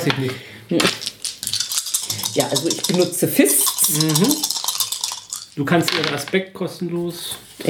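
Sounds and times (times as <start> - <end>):
speech: 0.0 - 1.1, 2.4 - 4.5, 5.6 - 7.6
dice rolling on a table: 0.8 - 6.4.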